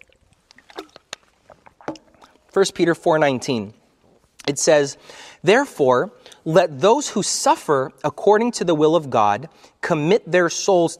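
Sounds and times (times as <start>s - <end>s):
person sipping and swallowing water: 0.0s - 2.6s
speech: 2.6s - 3.8s, 4.5s - 10.9s.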